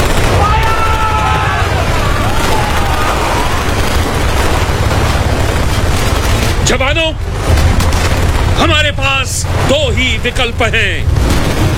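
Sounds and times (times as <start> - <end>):
light machine gun fire: 0.0 - 9.8, 11.0 - 11.7
mortar and grenade blasts: 0.0 - 11.7
faint shouting voices: 0.2 - 3.9
speech: 6.7 - 7.6, 8.6 - 11.4.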